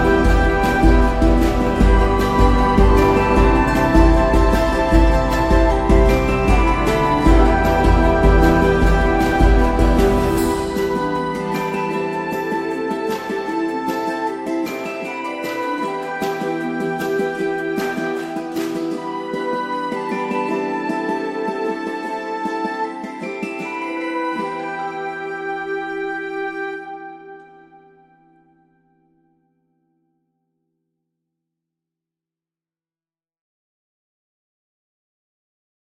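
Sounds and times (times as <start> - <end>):
medieval bardcore style music: 0.0 - 28.0.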